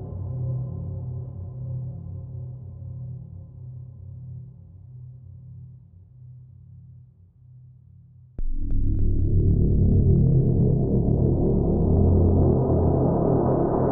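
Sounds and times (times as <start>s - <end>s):
ambience: 8.4s - 13.9s.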